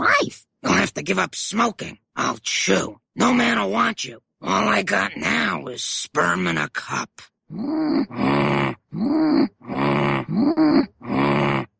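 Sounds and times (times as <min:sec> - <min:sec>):
speech: 0:01.0 - 0:11.2
low throaty grunts and groaning murmurs: 0:07.5 - 0:11.7.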